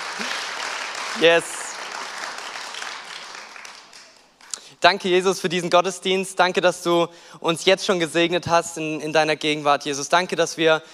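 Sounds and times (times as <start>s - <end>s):
audience applause: 0.0s - 4.6s
speech: 1.2s - 1.6s, 4.8s - 10.9s.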